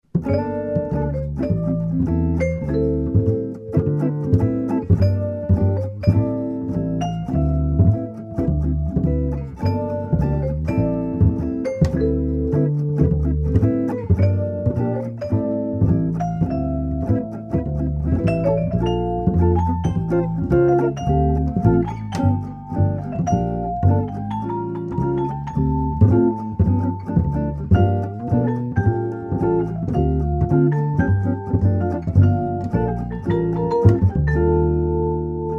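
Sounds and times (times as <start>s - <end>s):
samba trio: 0.1s - 35.4s.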